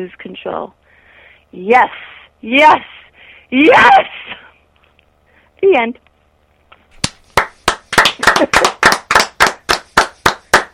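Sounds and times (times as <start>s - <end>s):
speech: 0.0s - 0.8s, 1.5s - 4.4s, 5.6s - 6.1s, 8.2s - 8.7s
men clapping in a standing ovation: 7.0s - 10.7s.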